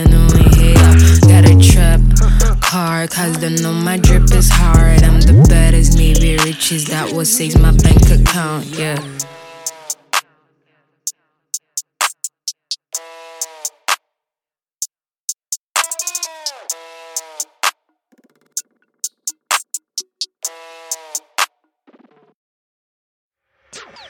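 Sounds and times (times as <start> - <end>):
trap beat: 0.0 - 10.2, 11.6 - 14.0, 15.3 - 17.7, 18.5 - 21.5.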